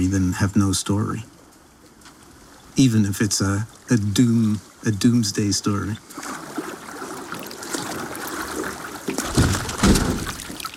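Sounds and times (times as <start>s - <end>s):
speech: 0.0s - 1.4s, 2.8s - 6.4s
water churning: 3.1s - 10.7s
heavy splashing surges: 5.6s - 10.7s.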